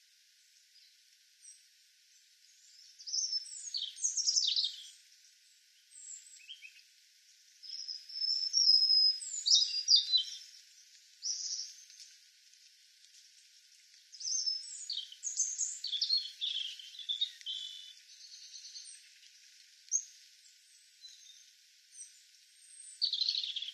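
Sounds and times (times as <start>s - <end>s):
European robin singing: 2.6s - 5.0s, 5.9s - 6.8s, 7.6s - 10.5s, 11.2s - 11.9s, 14.1s - 19.2s, 20.7s - 23.7s.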